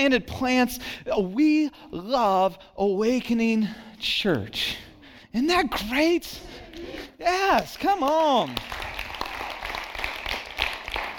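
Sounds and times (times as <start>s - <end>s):
speech: 0.0s - 8.8s
crowd clapping: 7.5s - 11.1s.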